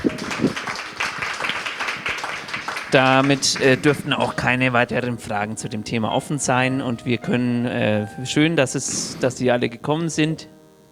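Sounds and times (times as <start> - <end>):
clapping: 0.0 - 4.6
laughter: 0.0 - 9.4
speech: 2.9 - 10.8.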